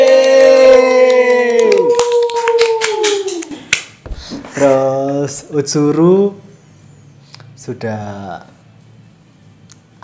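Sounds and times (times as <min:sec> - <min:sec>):
applause, hand clapping: 0:00.0 - 0:04.1
speech: 0:04.6 - 0:06.4, 0:07.7 - 0:08.6.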